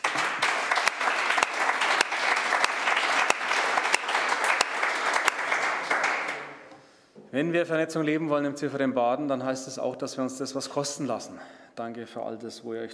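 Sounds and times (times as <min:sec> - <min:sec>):
audience clapping: 0:00.0 - 0:06.7
speech: 0:07.3 - 0:12.9.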